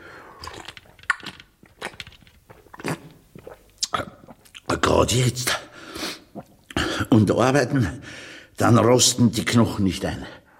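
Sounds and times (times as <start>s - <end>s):
chewing and crunching of food: 0.3s - 4.7s
speech: 5.0s - 5.6s, 7.2s - 10.4s.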